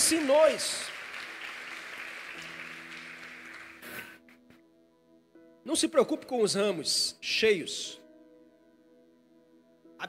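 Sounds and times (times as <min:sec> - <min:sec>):
audience applause: 0:00.0 - 0:04.2
speech: 0:00.1 - 0:00.9, 0:05.6 - 0:08.0.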